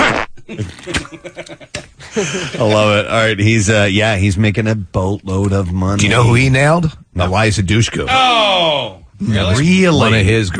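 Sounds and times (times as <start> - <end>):
fart: 0.0 - 1.1
laughter: 0.4 - 2.9
speech: 0.5 - 10.5.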